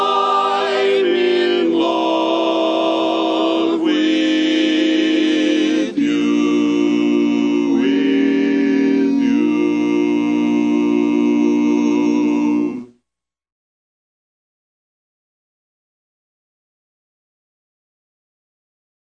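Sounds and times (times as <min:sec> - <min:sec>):
tenor singing: 0:00.0 - 0:12.9.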